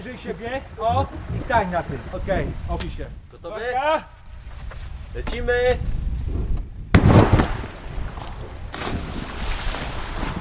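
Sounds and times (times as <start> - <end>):
speech: 0.0 - 4.2, 5.1 - 6.4
person launched from water blob splashing into water: 7.2 - 10.3.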